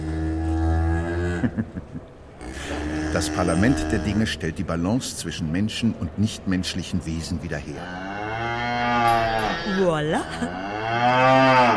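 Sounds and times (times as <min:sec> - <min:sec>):
cow mooing: 0:00.0 - 0:01.5, 0:02.4 - 0:04.4, 0:07.7 - 0:11.7
speech: 0:01.4 - 0:01.7, 0:03.2 - 0:08.1, 0:09.6 - 0:11.7
laughter: 0:01.4 - 0:02.8.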